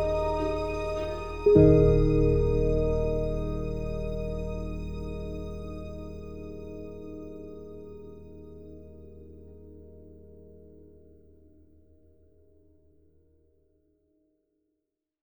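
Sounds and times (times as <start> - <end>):
minimal chime: 0.0 - 5.1.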